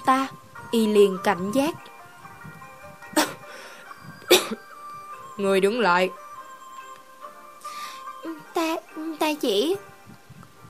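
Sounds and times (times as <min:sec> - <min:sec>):
speech: 0:00.1 - 0:01.9, 0:05.4 - 0:06.2, 0:09.3 - 0:09.9
violent coughing: 0:03.2 - 0:03.5, 0:04.3 - 0:04.7.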